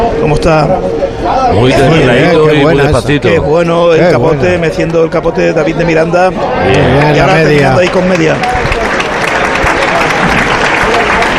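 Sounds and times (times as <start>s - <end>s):
speech: 0.3s - 8.7s
bullring crowd applause: 6.4s - 11.3s.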